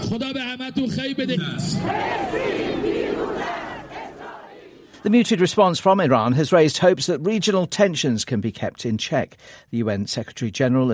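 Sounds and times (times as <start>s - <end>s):
speech: 0.1s - 3.7s, 5.0s - 10.9s
large crowd chanting slogans: 1.6s - 5.2s.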